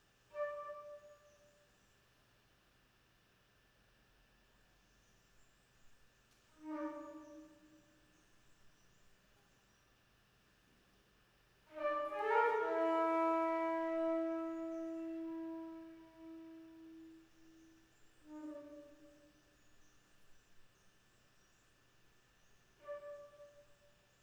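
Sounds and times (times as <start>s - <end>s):
flute: 0.3s - 1.5s, 6.6s - 7.9s, 11.7s - 17.7s, 22.8s - 23.9s.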